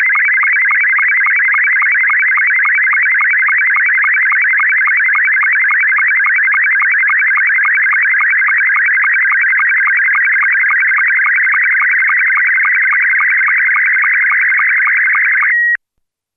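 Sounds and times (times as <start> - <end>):
SSTV Scottie 2 image signal tones: 0.0 - 15.8.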